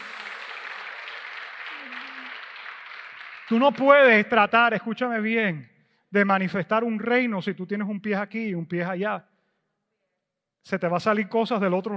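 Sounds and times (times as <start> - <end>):
audience applauding: 0.0 - 4.0
speech: 3.5 - 9.3, 10.6 - 11.9.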